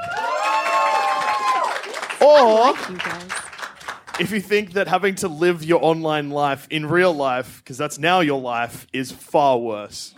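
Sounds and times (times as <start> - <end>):
audience clapping and cheering to vote: 0.0 - 4.8
speech: 2.2 - 3.4, 4.2 - 10.1.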